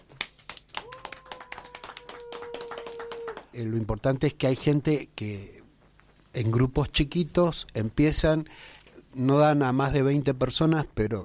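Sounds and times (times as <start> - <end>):
applause: 0.0 - 3.6
speech: 3.6 - 5.6, 6.3 - 11.2.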